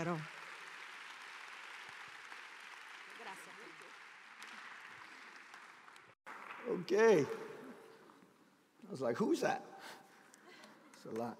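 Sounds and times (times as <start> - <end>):
speech: 0.0 - 0.4, 6.6 - 7.4, 8.8 - 10.0, 11.0 - 11.3
audience applause welcoming a reverend at a Hispanic Heritage Month celebration: 0.0 - 7.4.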